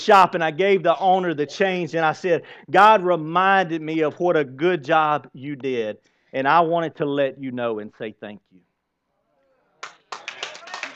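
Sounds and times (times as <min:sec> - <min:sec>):
speech: 0:00.0 - 0:08.7
audience clapping: 0:09.8 - 0:10.9.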